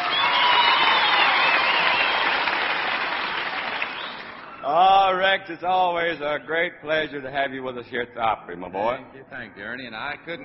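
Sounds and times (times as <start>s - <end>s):
audience clapping at a country music show: 0.0s - 4.6s
speech: 5.3s - 10.4s.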